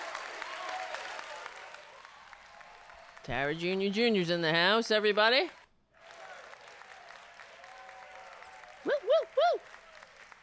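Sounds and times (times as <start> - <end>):
faint cheering: 0.0 - 3.3, 6.0 - 10.4
played audience clapping sound effect: 0.0 - 4.0, 4.9 - 10.4
speech: 3.2 - 5.6.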